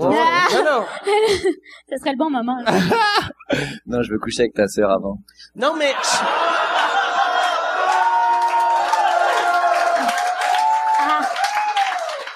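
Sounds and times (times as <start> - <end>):
laughter: 0.0 - 1.7, 2.7 - 3.7, 5.8 - 8.2
speech: 0.5 - 6.5
large live audience applauding: 6.3 - 12.3
whoops and cheers: 6.7 - 12.3.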